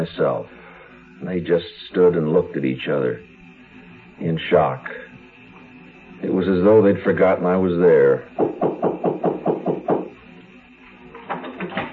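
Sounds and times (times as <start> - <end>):
speech: 0.0 - 0.6, 1.2 - 3.3, 4.2 - 5.0, 6.2 - 8.7
rapid knocking at a door: 8.4 - 10.1.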